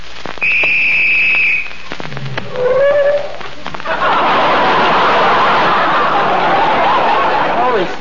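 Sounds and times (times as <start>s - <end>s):
police-style whistle being blown: 0.4s - 1.8s
laughter: 3.8s - 7.9s.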